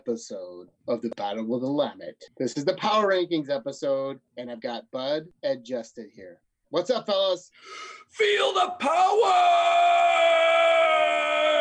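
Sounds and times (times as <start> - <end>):
speech: 0.0 - 10.6
excited loud yell: 8.2 - 11.6.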